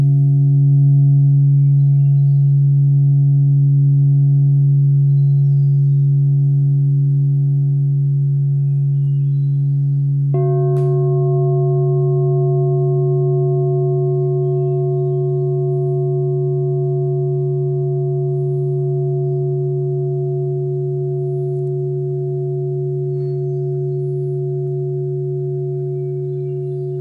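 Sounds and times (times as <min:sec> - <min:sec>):
clear bowl tone: 0:00.0 - 0:26.9.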